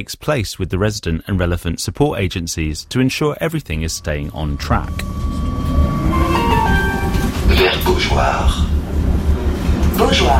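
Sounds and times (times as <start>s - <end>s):
speech: 0.0s - 5.2s, 7.5s - 8.8s, 10.0s - 10.3s
tram running on rails: 2.9s - 10.3s.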